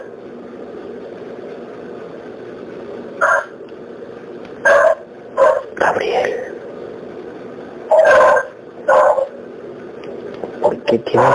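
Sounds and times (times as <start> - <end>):
dogs barking: 4.6 - 5.8, 7.9 - 9.4
speech: 10.9 - 11.3.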